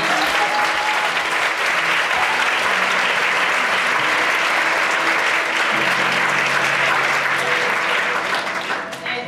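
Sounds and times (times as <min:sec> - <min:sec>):
audience applause: 0:00.0 - 0:09.1.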